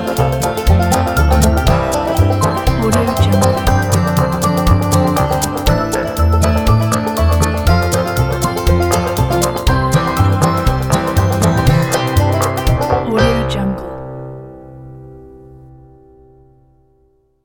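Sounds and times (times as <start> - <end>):
happy jaw harp tune: 0.0 - 13.8.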